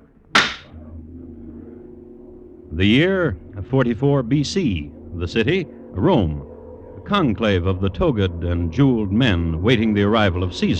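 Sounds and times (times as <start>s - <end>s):
gavel rapped for silence: 0.4s - 0.7s
speech: 2.8s - 10.7s.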